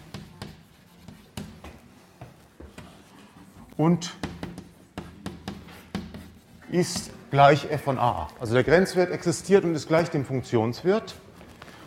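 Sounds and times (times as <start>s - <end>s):
handwriting of a maths limit formula: 0.0s - 7.2s
speech: 3.8s - 4.2s, 6.7s - 11.2s.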